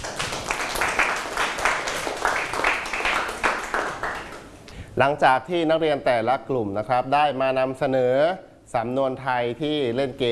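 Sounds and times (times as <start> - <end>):
group of students clapping in a classroom: 0.0 - 4.6
speech: 5.0 - 10.2.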